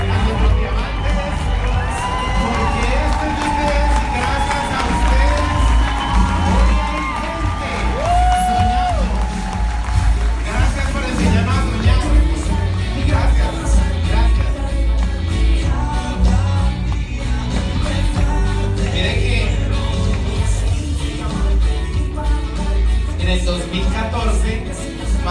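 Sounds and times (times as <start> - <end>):
crowd cheering and whooping: 0.0 - 16.5
large crowd clapping: 0.0 - 25.2.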